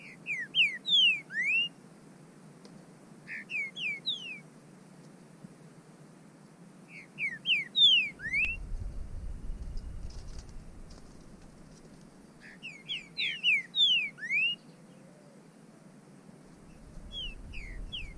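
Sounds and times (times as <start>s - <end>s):
bird whistling calls: 0.0s - 1.8s, 3.3s - 4.4s, 6.9s - 8.6s, 12.4s - 14.8s, 16.7s - 18.1s.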